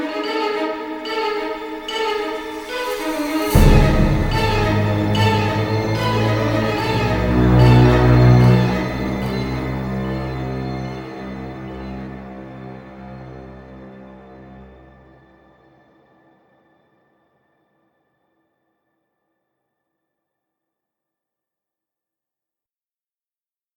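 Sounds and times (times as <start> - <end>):
horror thriller music: 0.0 - 17.5.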